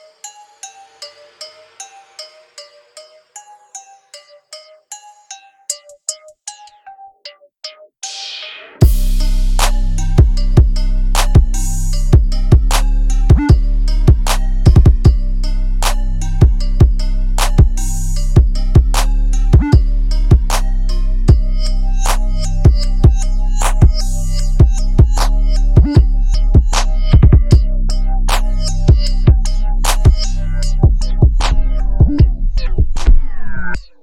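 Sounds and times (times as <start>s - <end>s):
beats: 7.6s - 34.0s.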